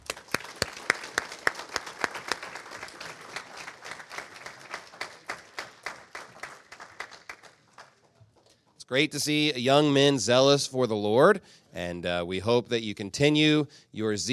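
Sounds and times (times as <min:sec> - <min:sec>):
audience applauding graduates: 0:00.0 - 0:08.5
speech: 0:08.9 - 0:14.3.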